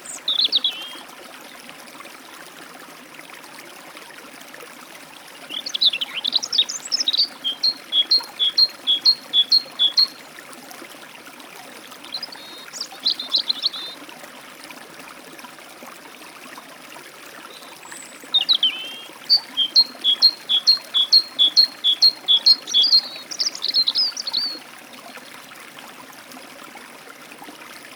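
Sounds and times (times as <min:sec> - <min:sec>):
European robin at a forest stream: 0:00.0 - 0:01.0, 0:05.5 - 0:10.3, 0:12.1 - 0:14.0, 0:17.6 - 0:24.6
great tit at a forest stream: 0:00.0 - 0:01.0, 0:05.5 - 0:10.2, 0:12.1 - 0:14.0, 0:17.9 - 0:24.6
forest stream flowing: 0:00.0 - 0:27.9.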